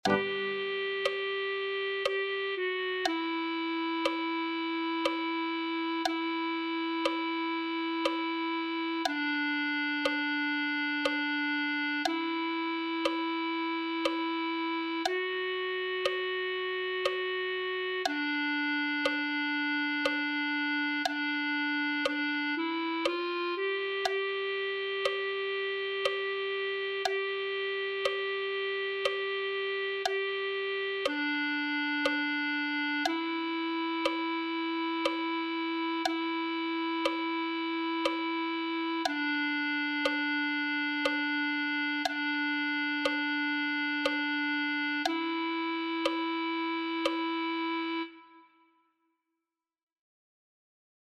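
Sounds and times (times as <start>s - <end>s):
clarinet: 0.0s - 48.8s.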